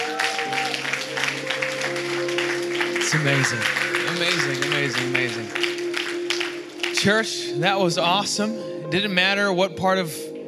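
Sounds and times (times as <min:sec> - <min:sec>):
audience applause: 0:00.0 - 0:07.4
speech: 0:03.1 - 0:05.7, 0:07.0 - 0:10.3.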